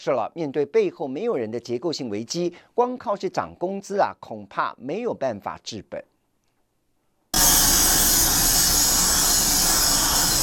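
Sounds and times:
speech: 0:00.0 - 0:06.1
harsh factory grinding and polishing noise: 0:07.4 - 0:10.4.

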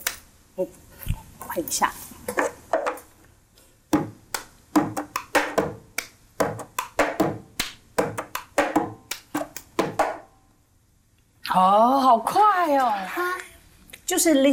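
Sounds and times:
speech: 0:00.6 - 0:02.4, 0:11.6 - 0:13.4, 0:14.1 - 0:14.5
rhythm tapped with plastic cups: 0:03.9 - 0:10.3
hand clapping: 0:04.3 - 0:10.2.

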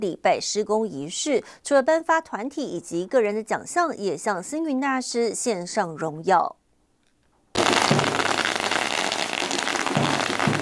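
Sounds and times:
speech: 0:00.0 - 0:06.6
long string of firecrackers popping: 0:07.5 - 0:10.6.

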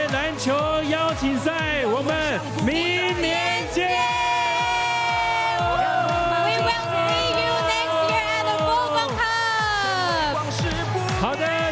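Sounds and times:
large audience applauding and cheering: 0:00.0 - 0:11.7
speech: 0:00.3 - 0:04.0
high whoops and shouting voices: 0:02.6 - 0:11.7.

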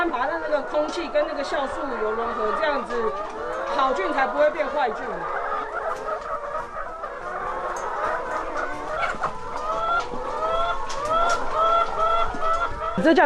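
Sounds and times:
chickens clucking: 0:00.0 - 0:13.2
speech: 0:00.6 - 0:05.4, 0:13.0 - 0:13.2.

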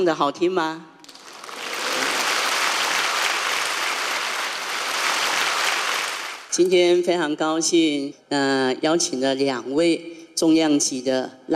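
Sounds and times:
speech: 0:00.0 - 0:00.9, 0:06.6 - 0:11.5
warm audience applause: 0:01.0 - 0:06.6.

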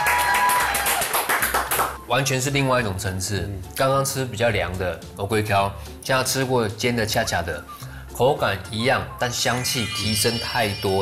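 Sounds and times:
single person clapping hands: 0:00.0 - 0:02.0
speech: 0:02.1 - 0:11.0.

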